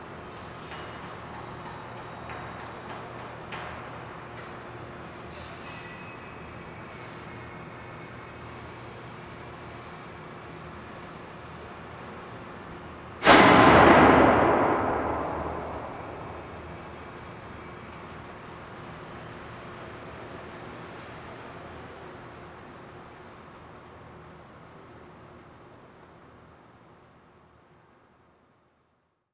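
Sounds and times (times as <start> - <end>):
ambience: 13.2 - 17.6.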